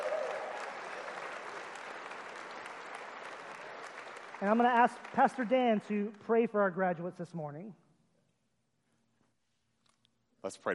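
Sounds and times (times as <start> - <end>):
audience applause: 0.0 - 5.8
speech: 4.4 - 7.8, 10.4 - 10.7.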